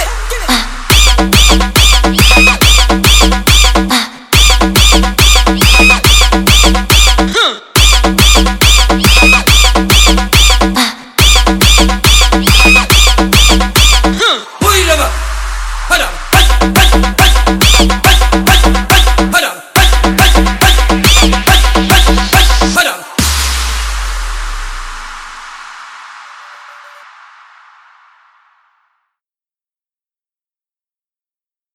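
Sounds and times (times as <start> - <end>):
beats: 0.0 - 26.0
whistle: 0.9 - 2.8, 5.6 - 6.7, 7.8 - 10.6, 12.5 - 14.0, 26.0 - 28.0.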